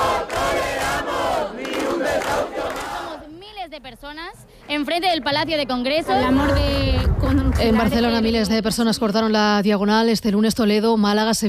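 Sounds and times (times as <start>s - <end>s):
protest crowd chanting: 0.0s - 3.3s
speech: 4.0s - 11.4s.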